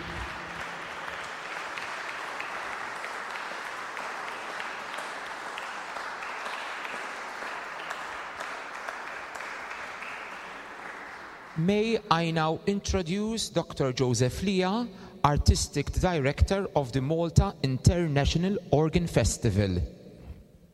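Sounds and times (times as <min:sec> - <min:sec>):
audience applause: 0:00.0 - 0:11.7
speech: 0:11.6 - 0:20.0.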